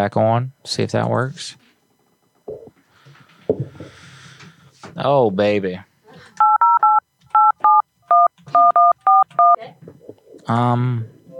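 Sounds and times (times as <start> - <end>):
speech: 0.0 - 1.7, 4.8 - 5.9, 9.6 - 11.3
phone number dialed with touch-tone beeps: 6.4 - 9.6.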